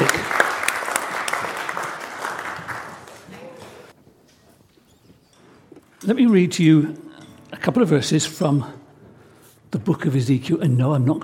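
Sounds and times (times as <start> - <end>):
audience applause: 0.0 - 4.0
speech: 6.1 - 7.0, 7.6 - 8.8, 9.7 - 11.2.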